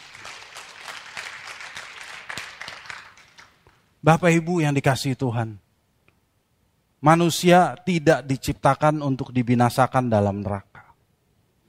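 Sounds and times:
applause: 0:00.0 - 0:03.9
speech: 0:04.0 - 0:05.6, 0:07.0 - 0:10.7.

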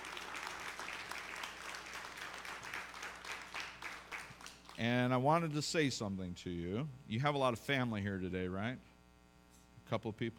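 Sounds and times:
audience clapping: 0:00.0 - 0:05.0
speech: 0:04.8 - 0:08.9, 0:09.9 - 0:10.3.

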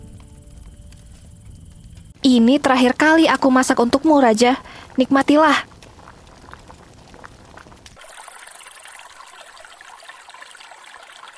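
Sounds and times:
speech: 0:02.2 - 0:05.7
flowing river water: 0:08.0 - 0:11.3.

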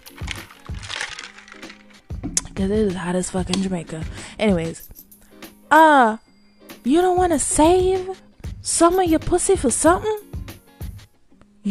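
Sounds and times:
plastic water bottle crinkling: 0:00.0 - 0:02.1
speech: 0:02.6 - 0:04.9, 0:05.7 - 0:06.2, 0:06.8 - 0:10.3.

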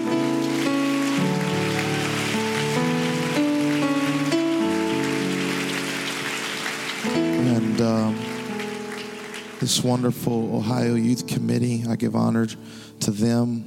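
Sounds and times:
audience applauding: 0:00.0 - 0:10.4
sustained organ chords: 0:00.0 - 0:13.4
speech: 0:09.7 - 0:13.6.

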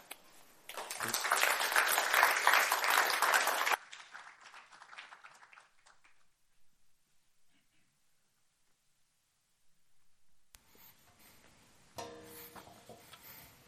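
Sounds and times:
church congregation applause welcoming a pastor: 0:00.7 - 0:06.3.

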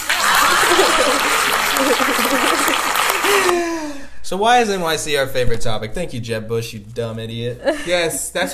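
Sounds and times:
audience applause: 0:00.0 - 0:03.8
voices whooping and laughing: 0:00.0 - 0:03.8
speech: 0:04.3 - 0:08.5.

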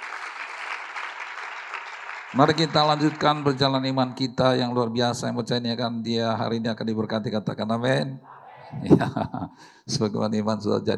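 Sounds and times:
applause: 0:00.0 - 0:04.4
speech: 0:02.3 - 0:10.9
laughter: 0:08.6 - 0:09.6.

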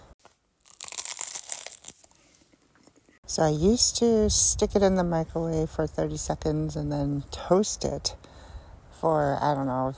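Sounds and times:
biting into a toasted cinnamon raisin bagel: 0:00.6 - 0:02.3
speech: 0:03.3 - 0:08.3, 0:09.0 - 0:09.9.

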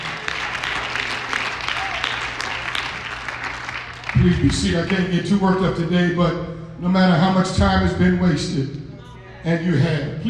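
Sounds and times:
people clapping hands: 0:00.0 - 0:05.2
speech: 0:04.2 - 0:08.8, 0:09.4 - 0:10.2.

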